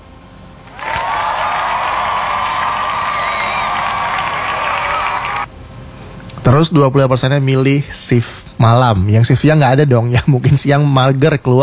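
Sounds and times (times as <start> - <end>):
crowd applause: 0.7 - 5.5
speech: 6.5 - 11.6.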